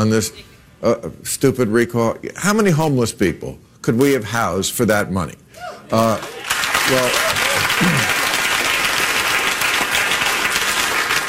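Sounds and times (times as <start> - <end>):
speech: 0.0 - 8.2
crowd cheering and applauding: 5.9 - 11.2.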